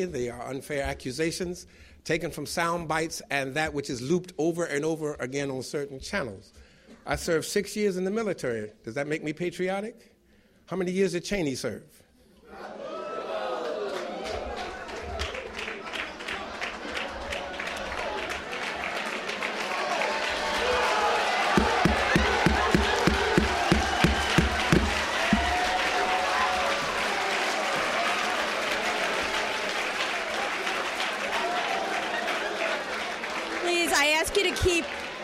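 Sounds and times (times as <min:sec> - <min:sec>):
speech: 0:00.0 - 0:10.1, 0:10.7 - 0:12.8
crowd voices: 0:12.5 - 0:35.2
audience applause: 0:12.7 - 0:35.2
rhythmic clapping: 0:14.2 - 0:35.2.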